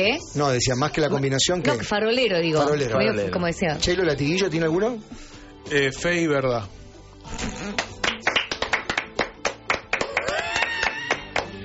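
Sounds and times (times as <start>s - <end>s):
speech: 0.0s - 7.9s
hand clapping: 7.7s - 11.6s.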